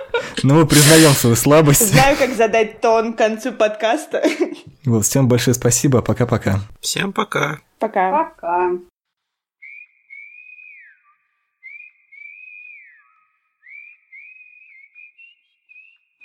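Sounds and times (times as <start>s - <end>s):
speech: 0.2s - 8.9s
person whistling a melody: 9.6s - 16.2s.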